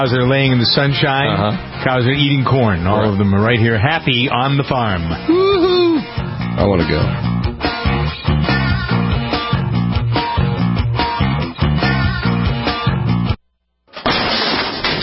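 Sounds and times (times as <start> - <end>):
speech: 0.0 - 5.4, 6.6 - 7.3
rhythmic music: 0.0 - 13.4
door being kicked in: 14.0 - 15.0.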